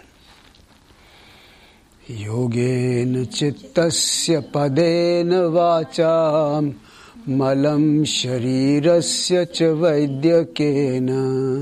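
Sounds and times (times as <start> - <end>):
slow inhaled breath at a yoga invocation: 1.0 - 1.9, 6.8 - 7.2
speech: 2.1 - 11.6.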